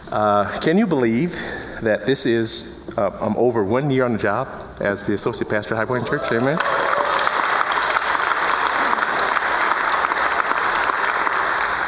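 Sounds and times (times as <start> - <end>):
speech: 0.1 - 6.8
warm audience applause: 5.9 - 11.8.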